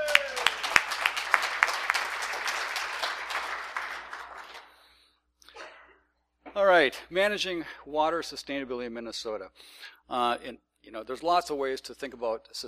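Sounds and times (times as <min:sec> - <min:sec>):
audience applause: 0:00.0 - 0:04.8
speech: 0:06.6 - 0:12.6.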